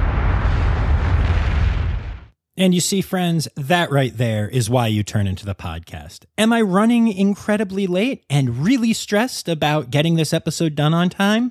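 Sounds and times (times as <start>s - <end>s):
explosion sound effect: 0.0s - 2.4s
speech: 2.6s - 11.5s.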